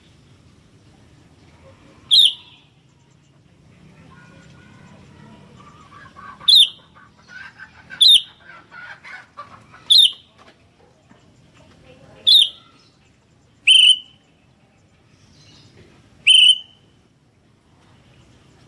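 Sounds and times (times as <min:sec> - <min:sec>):
Sooty-headed bulbul loud piercing chirps: 0:02.0 - 0:02.9, 0:04.1 - 0:07.0, 0:08.0 - 0:08.4, 0:09.9 - 0:10.3, 0:12.2 - 0:14.4, 0:16.2 - 0:17.0.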